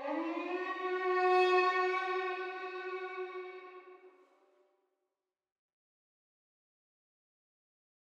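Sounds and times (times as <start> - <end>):
violin: 0.0 - 4.3.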